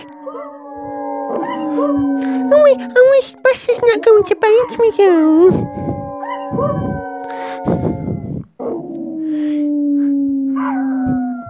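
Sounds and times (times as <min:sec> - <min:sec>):
dog yelping: 0:00.0 - 0:08.9
dog howling: 0:00.0 - 0:11.4
speech: 0:00.2 - 0:00.6, 0:01.8 - 0:05.8.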